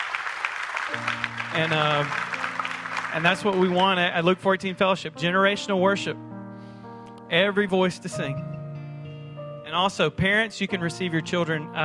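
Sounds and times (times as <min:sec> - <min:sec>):
audience applause: 0:00.0 - 0:04.2
speech: 0:00.9 - 0:02.4, 0:03.1 - 0:06.3, 0:07.3 - 0:08.5, 0:09.7 - 0:11.8.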